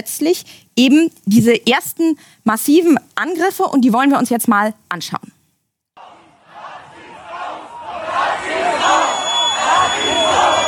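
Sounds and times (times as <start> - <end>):
speech: 0.0 - 5.3
crowd of neo-Nazis shouting while marching: 6.0 - 10.6.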